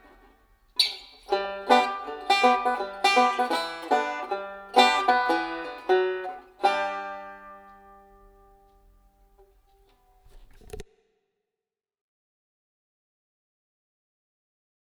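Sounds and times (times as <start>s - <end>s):
banjo ragtime: 0.0s - 8.9s.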